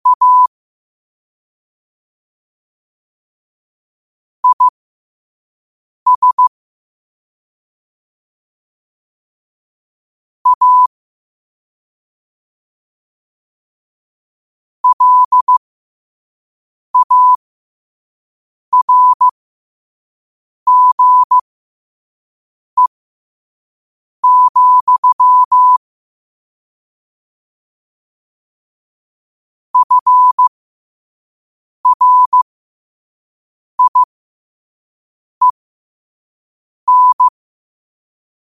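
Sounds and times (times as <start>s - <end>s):
morse code at 5 wpm: 0.0s - 0.5s, 4.4s - 4.7s, 6.1s - 6.5s, 10.5s - 10.9s, 14.8s - 15.6s, 17.0s - 17.4s, 18.8s - 19.3s, 20.7s - 21.4s, 24.2s - 25.8s, 29.8s - 30.5s, 31.8s - 32.4s, 33.8s - 34.1s, 36.9s - 37.3s.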